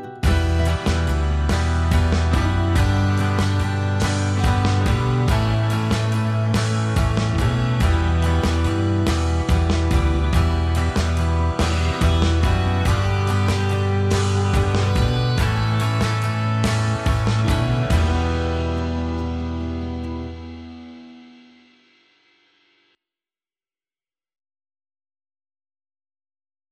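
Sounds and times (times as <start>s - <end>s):
retro pop music: 0.2s - 21.3s.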